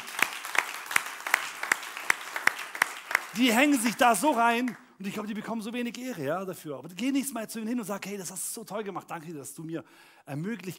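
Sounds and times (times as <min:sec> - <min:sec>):
audience applause: 0:00.0 - 0:04.8
speech: 0:03.4 - 0:10.7.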